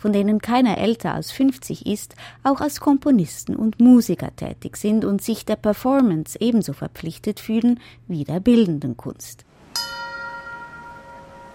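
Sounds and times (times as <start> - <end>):
speech: 0.0 - 10.0
bells and small bells ringing: 9.8 - 11.5.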